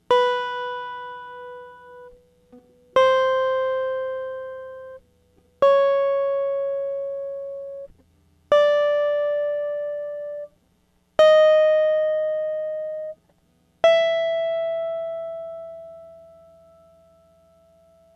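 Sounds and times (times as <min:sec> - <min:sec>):
Yamaha guitar with Fishman pickup playing a scale: 0:00.0 - 0:10.6, 0:11.2 - 0:18.1.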